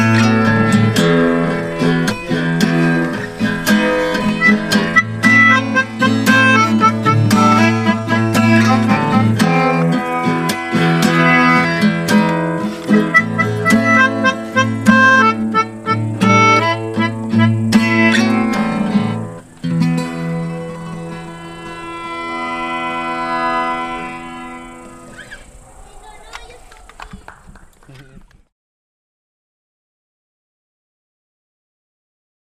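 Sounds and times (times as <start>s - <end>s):
melodica: 0.0s - 25.3s
guitar: 0.0s - 25.8s.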